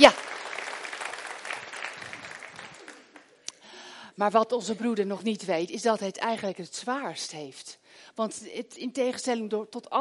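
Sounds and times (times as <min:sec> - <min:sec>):
audience applause: 0:00.0 - 0:03.4
speech: 0:04.2 - 0:09.9.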